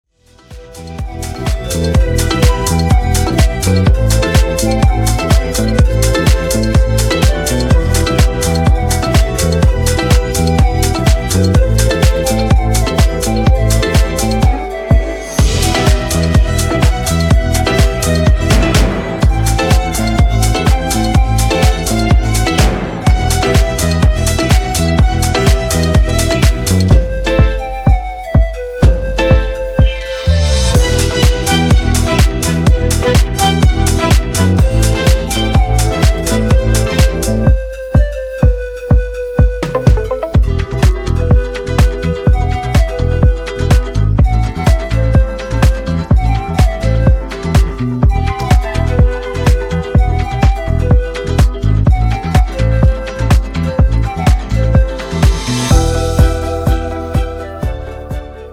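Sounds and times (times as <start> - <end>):
continuo groove: 0.2 - 58.5.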